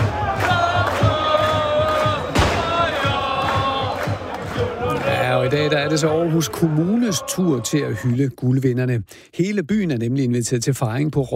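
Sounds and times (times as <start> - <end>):
rhythmic thumps: 0.0 - 6.7
sustained sung voices: 0.0 - 7.7
crowd cheering and chanting for a football championship: 0.0 - 8.4
speech: 5.5 - 11.3.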